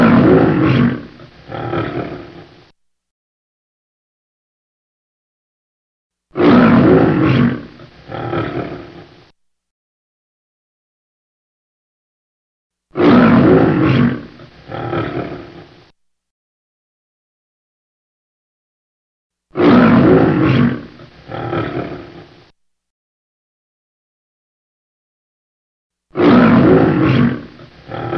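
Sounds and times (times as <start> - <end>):
lion roaring: 0.0 - 2.6, 6.4 - 9.3, 13.0 - 15.8, 19.6 - 22.5, 26.2 - 28.1.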